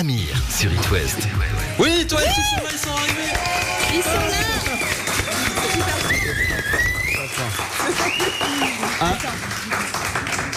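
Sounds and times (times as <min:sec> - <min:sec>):
speech: 0:00.0 - 0:04.8
live audience applauding and cheering: 0:01.4 - 0:10.5
sharp whistles: 0:04.2 - 0:08.9.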